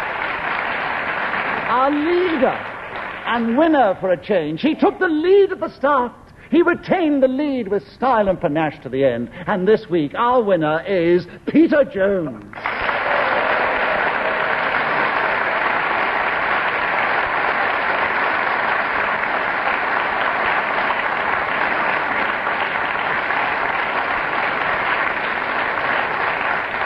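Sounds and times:
studio audience applause: 0.0 - 4.0, 12.5 - 26.8
speech: 1.7 - 2.7, 3.3 - 12.6.

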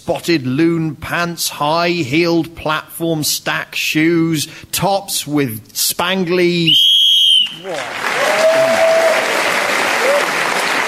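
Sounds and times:
speech: 0.0 - 9.2
whistle blast: 6.7 - 7.8
audience applause: 7.4 - 10.8.

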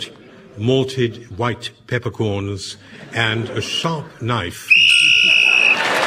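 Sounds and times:
speech: 0.0 - 4.8
whistle: 4.7 - 5.9.

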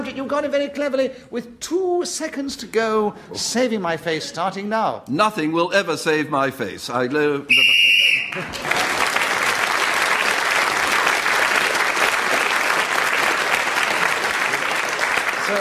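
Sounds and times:
speech: 0.0 - 9.0
shrill whistle blast ending the round: 7.5 - 8.4
applause: 8.1 - 15.5.

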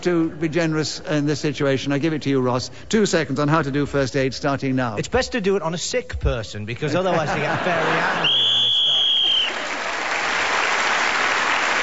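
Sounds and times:
speech: 0.0 - 8.5
laughter: 6.8 - 10.0
audience applause: 7.7 - 11.8
referee's whistle blast: 8.3 - 9.6.

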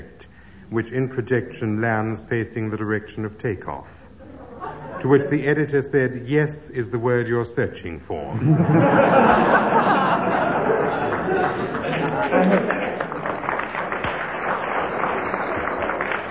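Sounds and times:
speech: 0.7 - 4.0, 5.0 - 9.8
crowd laughter: 4.2 - 5.4, 8.3 - 16.3
crowd applause: 8.8 - 16.3.

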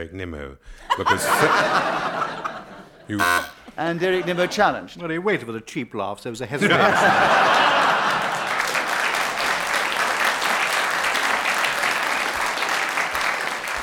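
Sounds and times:
speech: 0.0 - 2.5, 3.1 - 8.0
laughter: 0.9 - 3.2, 3.9 - 5.0, 6.6 - 8.9
audience round of applause: 6.9 - 13.8.

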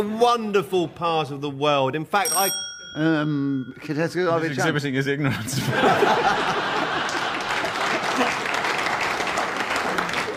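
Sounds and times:
speech: 0.0 - 7.0
audience chuckling: 5.3 - 8.7
audience applause: 6.1 - 10.3.

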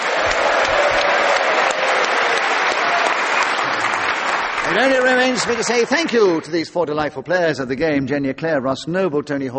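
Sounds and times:
audience applause: 0.0 - 6.8
speech: 4.7 - 9.5.

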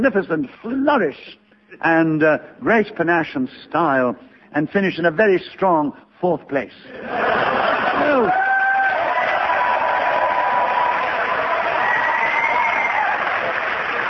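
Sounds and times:
speech: 0.0 - 8.4
laughter: 6.9 - 8.4
audience cheering and applause: 7.6 - 14.0
whoops and high whistles: 11.8 - 13.2.

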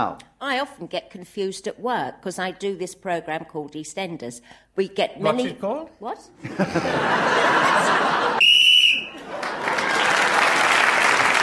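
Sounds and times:
speech: 0.0 - 8.4
laughter: 6.4 - 8.4, 9.1 - 11.3
game show whistle: 8.4 - 9.2.

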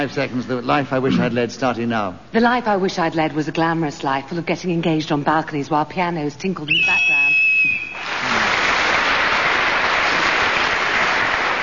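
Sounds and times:
speech: 0.0 - 7.8
shrill game show whistle: 6.7 - 8.0
loud steady applause: 7.9 - 11.6.

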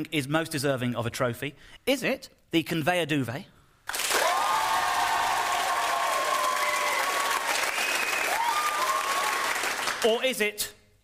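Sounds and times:
speech: 0.0 - 4.0, 10.0 - 10.8
crowd applauding: 3.9 - 10.2
high whistles: 7.6 - 8.8.

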